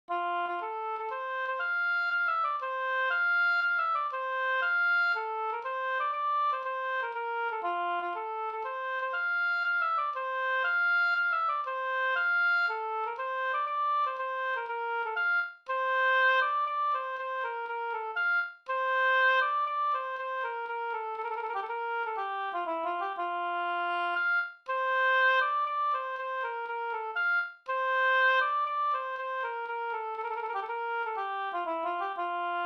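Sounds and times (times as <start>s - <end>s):
polska folk tune from Västmanland: 0.1s - 32.6s.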